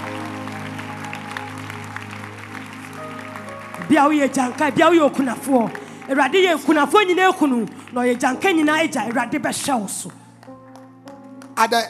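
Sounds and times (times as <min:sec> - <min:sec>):
audience clapping hands: 0:00.0 - 0:11.8
speech: 0:03.8 - 0:10.2, 0:11.6 - 0:11.8.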